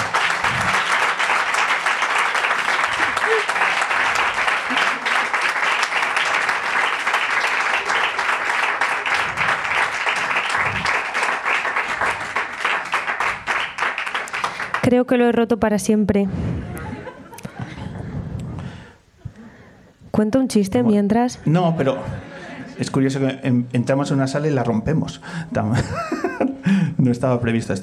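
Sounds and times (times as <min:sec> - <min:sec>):
laughter: 0:00.0 - 0:12.4, 0:16.6 - 0:19.8, 0:21.8 - 0:23.0, 0:25.6 - 0:26.7
crowd applauding: 0:00.0 - 0:14.9
speech: 0:14.9 - 0:16.5, 0:20.2 - 0:26.2, 0:27.0 - 0:27.8.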